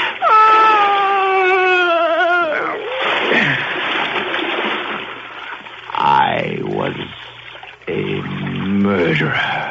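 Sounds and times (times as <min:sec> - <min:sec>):
bodies splashing into water: 0:00.0 - 0:09.6
woman moaning: 0:00.2 - 0:03.0.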